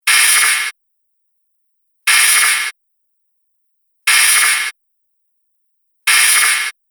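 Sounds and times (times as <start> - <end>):
metallic laser loop: 0.1 - 0.7, 2.1 - 2.7, 4.1 - 4.7, 6.1 - 6.7.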